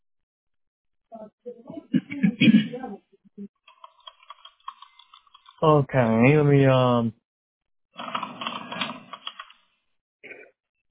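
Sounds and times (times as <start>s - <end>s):
speech: 1.2s - 1.8s, 5.6s - 7.2s
typing on a computer keyboard set to Japanese: 3.7s - 5.6s, 8.0s - 9.7s.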